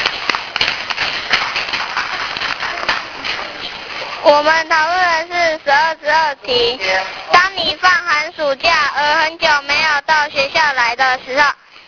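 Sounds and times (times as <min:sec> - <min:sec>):
group clapping hands: 0:00.0 - 0:03.6
speech: 0:04.2 - 0:11.6.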